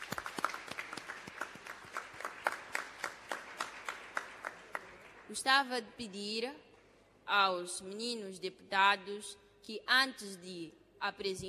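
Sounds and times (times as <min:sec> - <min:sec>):
audience applause: 0:00.0 - 0:05.3
speech: 0:05.3 - 0:06.6, 0:07.3 - 0:11.4.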